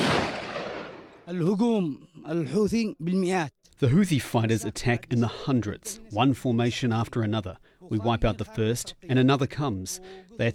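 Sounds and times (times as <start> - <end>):
artillery and mortar fire near Taiz in southwestern Yemen: 0.0 - 1.3
speech: 1.3 - 10.5.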